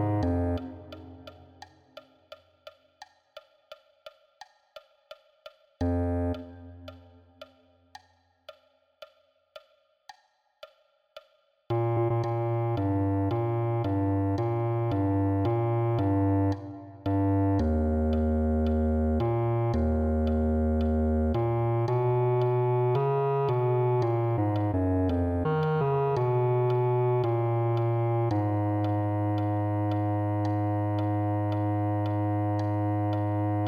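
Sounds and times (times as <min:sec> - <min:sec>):
bass clarinet: 0:00.0 - 0:01.3, 0:05.8 - 0:06.9, 0:11.7 - 0:33.6.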